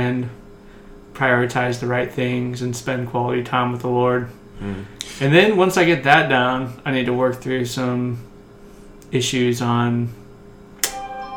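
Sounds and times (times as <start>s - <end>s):
speech: 0.0s - 0.4s, 1.2s - 8.3s, 9.1s - 10.2s
mobile phone notification: 10.8s - 11.3s.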